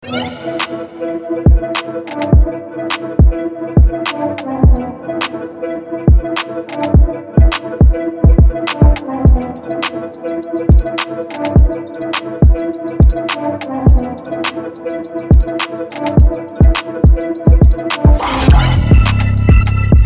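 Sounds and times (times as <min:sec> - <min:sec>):
hip hop music: 0:00.0 - 0:20.0.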